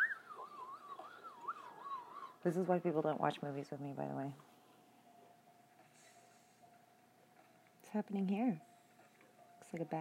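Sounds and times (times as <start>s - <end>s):
whistling in a film: 0.0s - 2.3s
speech: 2.4s - 4.5s, 7.9s - 8.7s, 9.7s - 10.0s.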